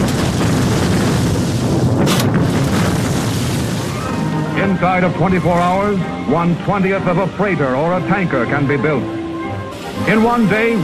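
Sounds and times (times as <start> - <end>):
sharp crackling burst of dynamite explosion: 0.0 - 4.5, 9.7 - 10.8
massive explosions from 2 tons of dynamite leveling terrain near Berlin: 0.0 - 7.2
speech: 4.7 - 9.2, 10.0 - 10.8.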